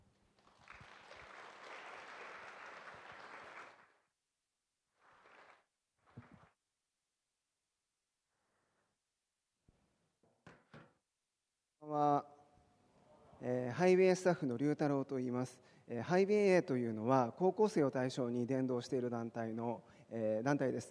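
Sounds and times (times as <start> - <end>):
audience applause welcoming a speaker: 0.4 - 4.0, 5.0 - 6.5
speech: 11.8 - 12.3, 13.4 - 20.8.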